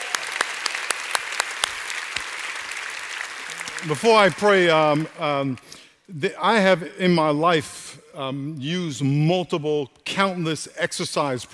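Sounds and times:
church congregation applauding: 0.0s - 5.7s
speech: 3.8s - 11.5s.

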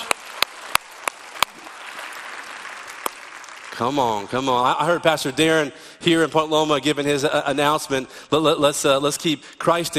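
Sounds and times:
church congregation clapping at a Christmas service: 0.0s - 5.2s
speech: 3.8s - 9.9s.

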